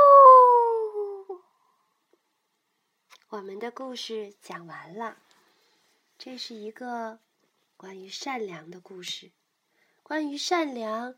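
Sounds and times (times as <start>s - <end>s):
person imitating a tyrannosaurus roar: 0.0s - 1.4s
speech: 3.3s - 5.3s, 6.2s - 9.4s, 10.1s - 11.1s.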